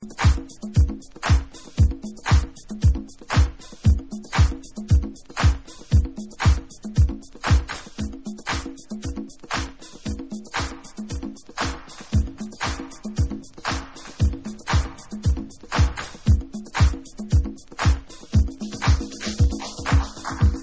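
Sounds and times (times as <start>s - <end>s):
bass: 0.0s - 20.6s.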